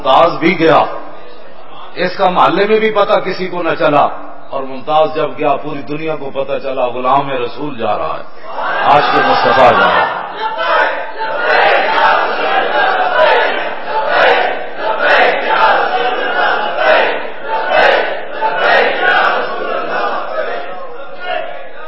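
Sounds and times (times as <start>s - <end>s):
speech: 0.0s - 1.0s, 2.0s - 11.0s
crowd chanting a slogan: 8.4s - 21.8s.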